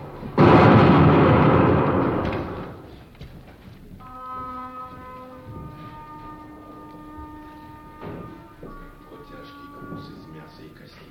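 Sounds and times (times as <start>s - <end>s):
cannon fired as a salute with rumbling echo: 0.4s - 3.0s
faint steady musical tone: 4.0s - 11.1s.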